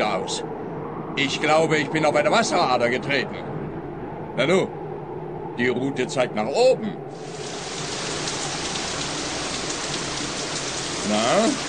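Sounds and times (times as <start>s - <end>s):
speech: 0.0s - 0.6s, 1.2s - 3.5s, 4.4s - 4.8s, 5.6s - 7.4s, 11.1s - 11.6s
steady rain pattering on a surface: 7.1s - 11.6s.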